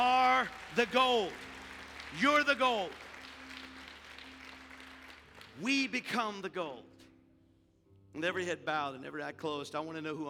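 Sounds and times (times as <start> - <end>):
speech: 0.0 - 1.5, 2.1 - 3.0, 5.6 - 7.0, 8.2 - 10.2
crowd applauding: 0.0 - 6.3.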